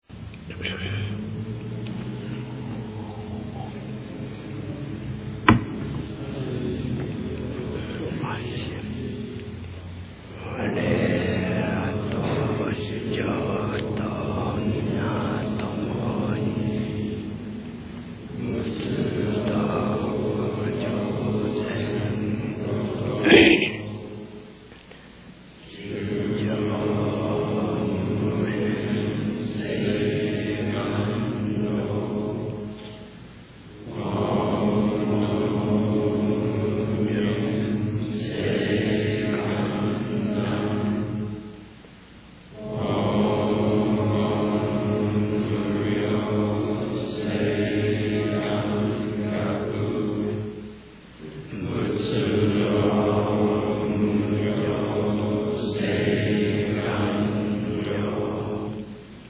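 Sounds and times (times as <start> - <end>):
end chant: 0.0 - 59.2.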